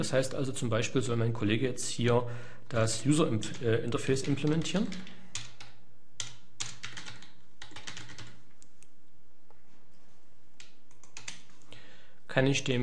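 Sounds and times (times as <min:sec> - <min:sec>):
speech: 0:00.0 - 0:05.2, 0:12.4 - 0:12.8
typing on a computer keyboard: 0:04.2 - 0:08.7, 0:10.6 - 0:11.6.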